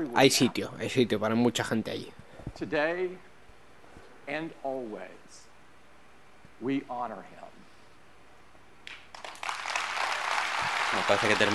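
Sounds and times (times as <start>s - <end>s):
speech: 0.0s - 3.3s, 4.3s - 5.5s, 6.6s - 7.4s, 10.9s - 11.5s
audience applause after a tribute to Steve Jobs: 9.1s - 11.5s.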